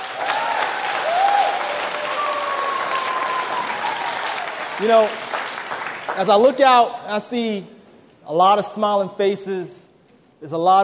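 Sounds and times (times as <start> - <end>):
audience applause for graduates: 0.0 - 6.6
speech: 4.8 - 5.3, 6.1 - 9.8, 10.4 - 10.8.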